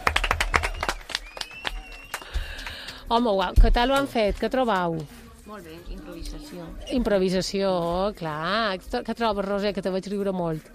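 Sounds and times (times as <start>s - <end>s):
audience at an improvisation show clapping: 0.0s - 4.5s
speech: 3.1s - 10.7s.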